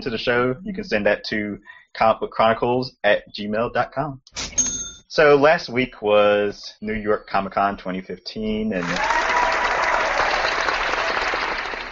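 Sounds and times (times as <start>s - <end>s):
speech: 0.0s - 9.2s
applause from a crowd at a comic convention: 8.8s - 11.9s.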